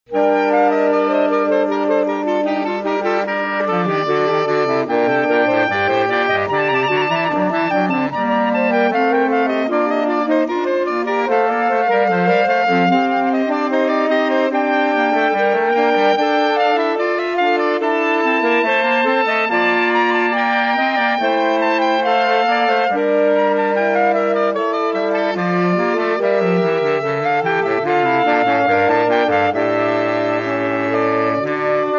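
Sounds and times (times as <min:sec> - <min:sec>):
saxophone: 0:00.1 - 0:31.9.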